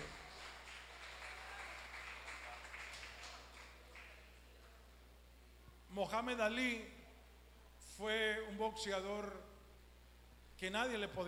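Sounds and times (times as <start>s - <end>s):
audience applause: 0.0s - 4.8s
speech: 6.0s - 7.0s, 8.0s - 9.5s, 10.6s - 11.2s.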